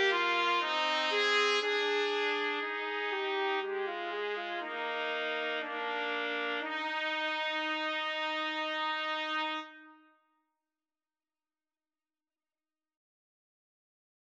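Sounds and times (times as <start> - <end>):
clarinet concerto: 0.0 - 10.0
trumpet trio: 0.0 - 10.1.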